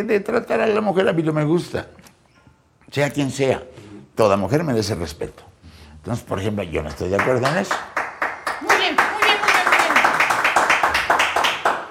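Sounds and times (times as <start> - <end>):
speech: 0.0 - 2.1, 2.9 - 8.0
audience applause: 7.1 - 11.8.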